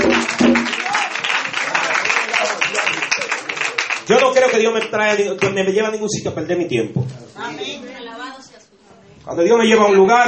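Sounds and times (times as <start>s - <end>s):
audience applause: 0.0s - 5.5s
speech: 4.5s - 8.1s, 9.3s - 10.2s.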